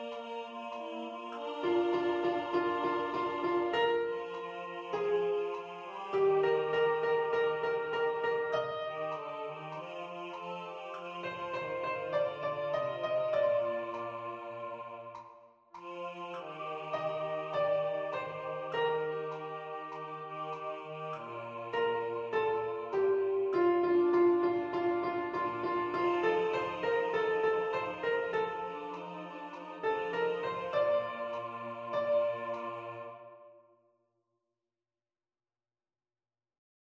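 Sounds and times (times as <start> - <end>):
piano: 0.0 - 15.3, 16.3 - 33.6
soprano singing: 0.0 - 33.6.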